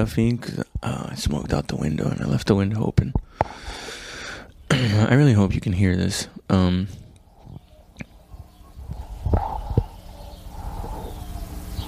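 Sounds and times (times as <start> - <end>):
speech: 0.0 - 3.8, 4.8 - 7.0
neighbor's chickens clucking: 6.9 - 11.8.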